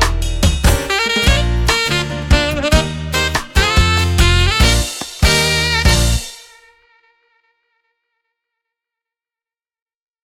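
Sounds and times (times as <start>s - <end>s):
saxophone playing: 0.8s - 7.0s.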